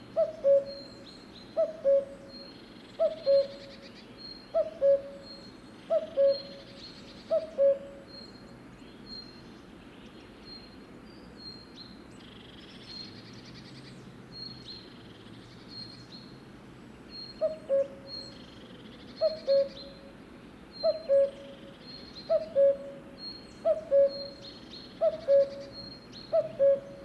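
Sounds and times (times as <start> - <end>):
cuckoo calling: 0.1 - 1.0, 1.6 - 2.4, 3.0 - 3.8, 4.5 - 8.2, 17.2 - 18.4, 19.2 - 20.1, 20.8 - 27.0
other birds whistling: 3.0 - 3.7, 4.3 - 6.6, 17.2 - 18.4, 19.2 - 20.0, 20.8 - 27.0.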